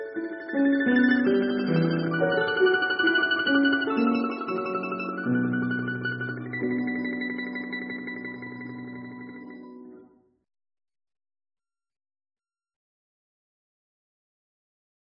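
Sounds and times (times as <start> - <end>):
domra playing: 0.2 - 9.7.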